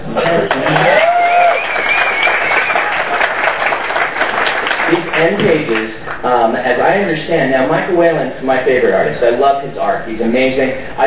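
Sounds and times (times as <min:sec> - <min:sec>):
audience clapping: 0:00.1 - 0:06.3
speech: 0:05.8 - 0:11.0.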